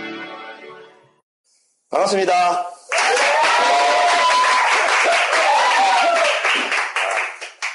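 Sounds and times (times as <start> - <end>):
speech: 2.0 - 2.8
crowd clapping: 2.9 - 7.7
voices whooping: 3.0 - 6.4.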